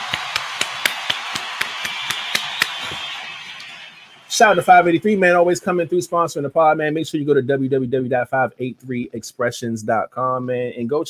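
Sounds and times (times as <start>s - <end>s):
round of applause: 0.0s - 4.7s
speech: 4.4s - 11.0s.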